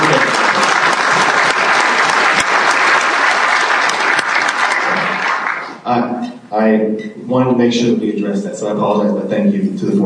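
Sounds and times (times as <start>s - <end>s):
group applause: 0.0s - 5.9s
speech: 6.6s - 10.0s.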